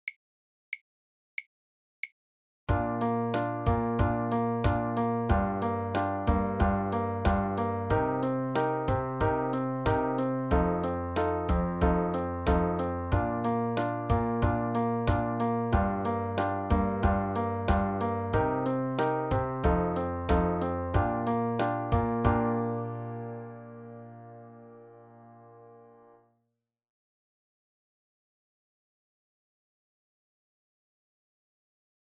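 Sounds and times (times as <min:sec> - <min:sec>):
composition accompaniment: 0:02.7 - 0:26.0.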